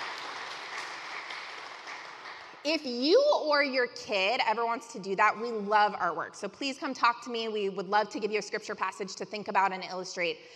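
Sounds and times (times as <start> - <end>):
audience round of applause: 0.0 - 2.6
speech: 2.6 - 10.5.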